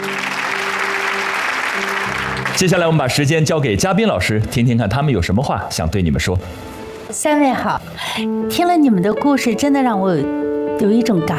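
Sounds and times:
audience applause: 0.0 - 3.5
speech: 2.6 - 11.3.

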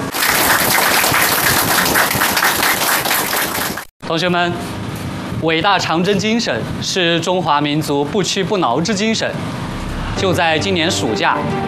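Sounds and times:
audience applause: 0.0 - 3.9
speech: 4.1 - 4.8, 5.4 - 11.6.

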